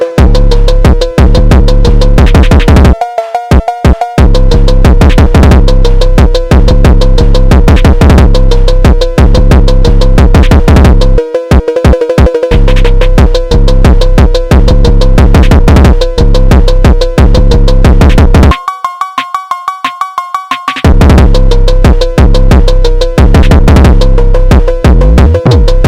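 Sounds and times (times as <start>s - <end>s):
phonk bass: 0.2s - 18.6s, 20.8s - 25.8s.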